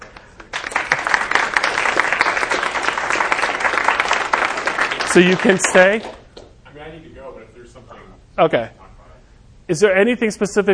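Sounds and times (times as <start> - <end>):
audience applause: 0.0 - 6.2
speech: 5.2 - 6.2, 8.4 - 8.8, 9.7 - 10.7.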